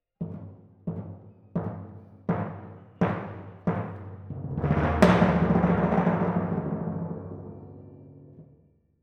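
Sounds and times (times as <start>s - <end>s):
timpani in F: 0.2s - 8.7s.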